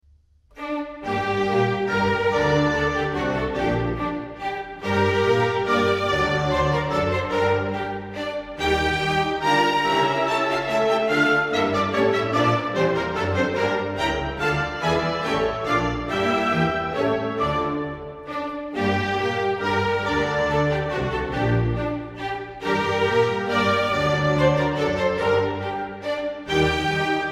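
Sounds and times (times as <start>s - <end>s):
minuet and trio music: 0.4s - 27.3s.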